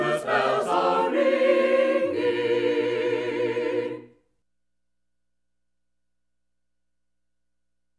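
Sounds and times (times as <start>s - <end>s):
people caroling: 0.0s - 4.2s.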